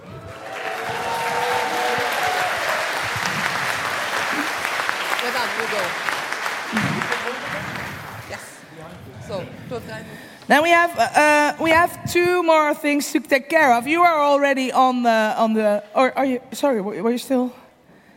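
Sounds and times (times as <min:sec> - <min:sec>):
faint voices and cheers: 0:00.0 - 0:06.0
audience applause: 0:00.0 - 0:08.6
speech: 0:09.7 - 0:17.6.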